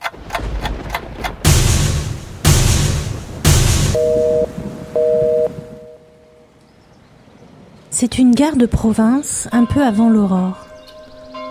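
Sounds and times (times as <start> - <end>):
theatre knocks before curtain rises: 0.4 - 4.0
speech: 8.0 - 10.6.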